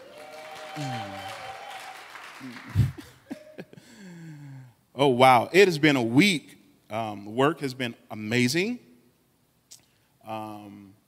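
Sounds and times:
whoops and cheering voices: 0.0s - 2.9s
crowd applauding: 0.0s - 3.4s
speech: 0.8s - 1.3s, 2.4s - 3.1s, 5.0s - 8.9s, 10.3s - 10.8s.

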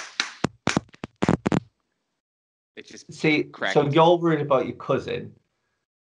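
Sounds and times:
slapping thighs: 0.0s - 1.7s
speech: 2.8s - 5.4s.

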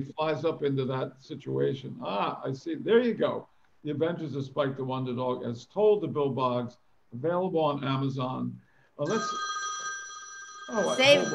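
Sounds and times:
speech: 0.0s - 9.6s, 10.7s - 11.3s
telephone ringing: 9.0s - 11.3s
people chattering: 10.7s - 11.3s.

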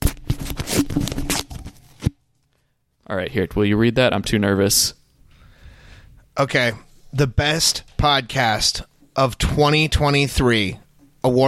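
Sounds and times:
envelope being torn open at an award announcement: 0.0s - 1.7s
speech: 3.1s - 5.0s, 6.4s - 11.4s.

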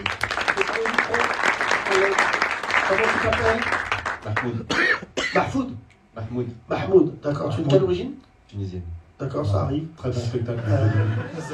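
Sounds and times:
audience applauding: 0.0s - 4.6s
speech: 2.9s - 11.5s
laughter: 10.4s - 11.5s.

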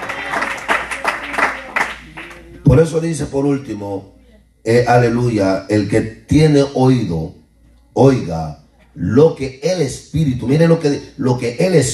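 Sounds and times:
audience clapping rhythmically: 0.0s - 2.8s
murmur of voices: 0.0s - 9.6s
sustained tonal hum: 0.0s - 11.9s
speech: 2.7s - 7.4s, 8.0s - 11.9s.

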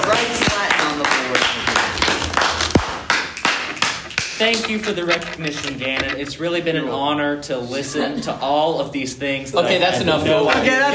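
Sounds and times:
scattered applause: 0.0s - 4.6s
speech: 4.4s - 10.9s.

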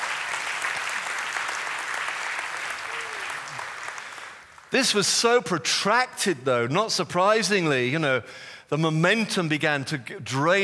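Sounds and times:
faint crowd cheer: 0.0s - 4.4s
audience applauding: 0.0s - 4.8s
speech: 4.7s - 10.6s.

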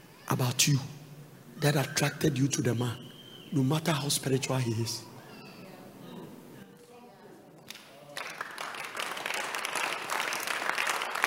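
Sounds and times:
speech: 0.3s - 1.0s, 1.6s - 5.1s
men clapping: 7.7s - 11.2s.

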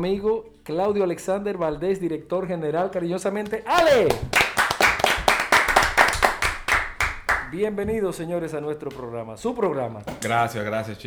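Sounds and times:
speech: 0.0s - 4.5s, 7.5s - 11.0s
audience applause: 3.7s - 7.6s.

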